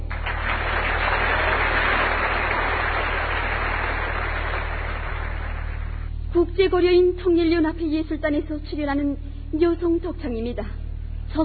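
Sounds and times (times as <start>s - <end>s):
audience applause between songs: 0.1s - 6.1s
speech: 6.6s - 11.4s.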